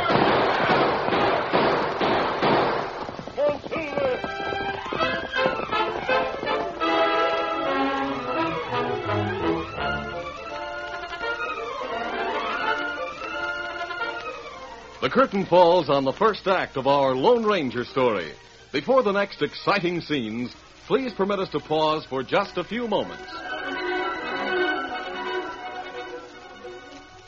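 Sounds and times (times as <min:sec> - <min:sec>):
rapid gunshots during a horseback chase: 0:00.0 - 0:03.2
sweeping orchestral music with rising and falling string lines: 0:03.9 - 0:27.2
speech: 0:15.1 - 0:23.5.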